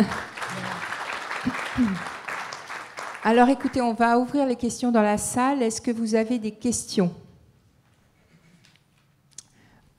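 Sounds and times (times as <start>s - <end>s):
audience applause: 0.0s - 3.8s
speech: 1.8s - 2.1s, 3.2s - 7.2s.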